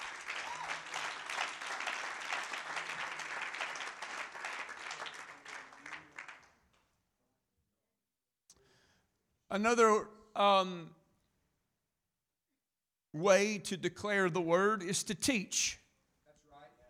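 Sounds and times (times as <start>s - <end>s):
church congregation clapping hands: 0.0s - 7.0s
speech: 9.5s - 11.0s, 13.2s - 15.8s.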